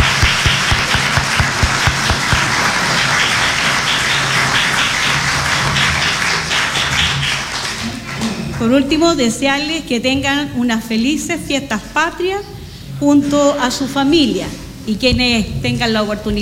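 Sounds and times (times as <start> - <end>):
audience applause: 0.0 - 8.5
speech: 8.6 - 16.4.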